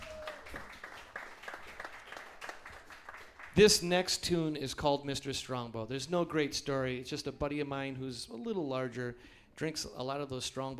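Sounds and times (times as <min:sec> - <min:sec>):
audience applause for the drummer: 0:00.0 - 0:03.7
speech: 0:03.6 - 0:10.7.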